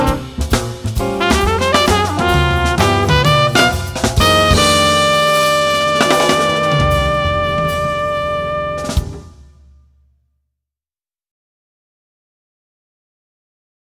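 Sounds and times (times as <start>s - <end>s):
jazz blues trumpet solo: 0.0s - 9.6s.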